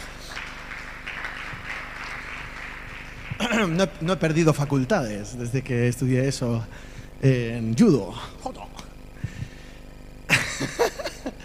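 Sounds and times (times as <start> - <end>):
audience applause: 0.0 - 5.4
speech: 3.4 - 8.7
laughter: 10.3 - 11.4.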